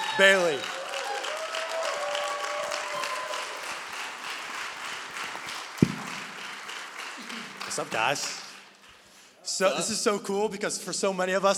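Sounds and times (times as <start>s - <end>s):
audience whoops: 0.0s - 3.7s
audience clapping at a church event: 0.0s - 9.2s
speech: 0.2s - 0.8s, 7.8s - 8.4s, 9.5s - 11.5s
sharp thump: 5.8s - 6.4s.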